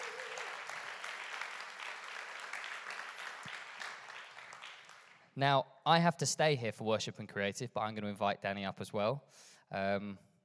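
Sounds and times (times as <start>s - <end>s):
audience applause: 0.0s - 5.3s
speech: 5.4s - 10.3s.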